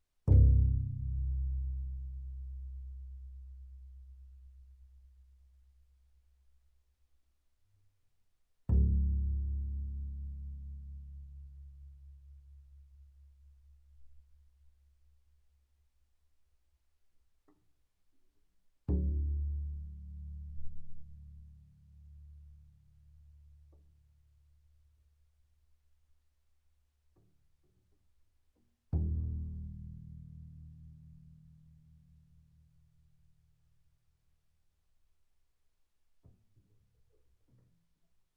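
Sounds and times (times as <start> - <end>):
double bass pizzicato on C string, fortissimo: 0.3 - 5.3, 8.7 - 14.3, 18.8 - 23.1, 28.8 - 32.8.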